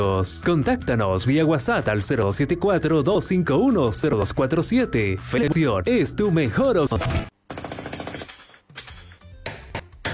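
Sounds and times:
speech: 0.0 - 7.3
jackhammer breaking up concrete: 7.1 - 8.2.

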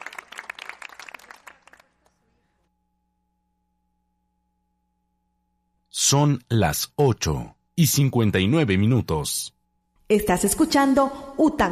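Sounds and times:
applause: 0.0 - 2.4
speech: 6.1 - 11.7.

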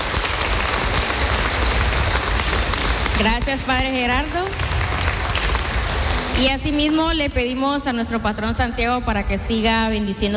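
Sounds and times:
audience applause: 0.0 - 6.4
speech: 3.2 - 4.7, 6.4 - 10.3.

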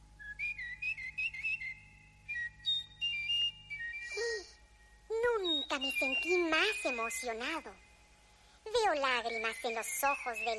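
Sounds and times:
songbird trilling: 0.5 - 4.2, 5.4 - 7.6, 9.2 - 10.5
speech: 5.8 - 7.9, 8.8 - 10.5.

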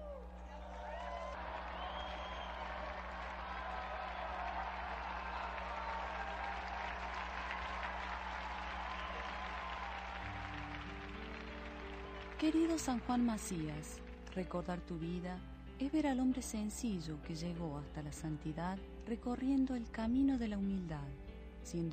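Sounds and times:
audience applause: 0.0 - 14.4
speech: 12.4 - 21.9.

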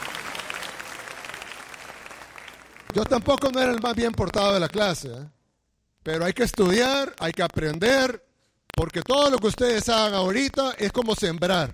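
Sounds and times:
applause from a classroom audience of students: 0.0 - 3.1
speech: 2.9 - 5.4, 6.0 - 11.7.

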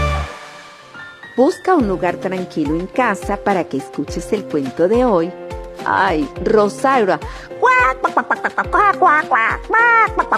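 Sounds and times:
speech: 1.4 - 10.3
hen clucking on a bicycle: 7.6 - 10.3.

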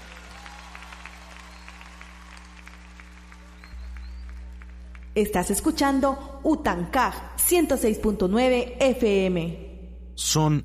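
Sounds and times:
crowd applauding: 0.0 - 5.4
low hum: 0.0 - 10.6
speech: 5.2 - 9.6, 10.2 - 10.6.

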